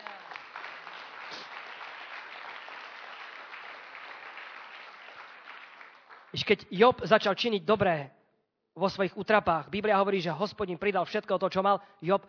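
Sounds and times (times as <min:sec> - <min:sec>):
audience applause: 0:00.0 - 0:06.5
speech: 0:06.3 - 0:08.2, 0:08.8 - 0:12.2.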